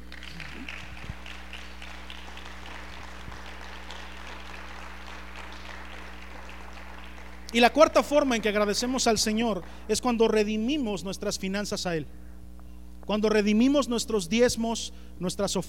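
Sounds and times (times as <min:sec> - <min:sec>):
audience applauding: 0:00.0 - 0:09.9
low steady hum: 0:00.0 - 0:15.6
speech: 0:07.5 - 0:12.2, 0:13.1 - 0:15.6.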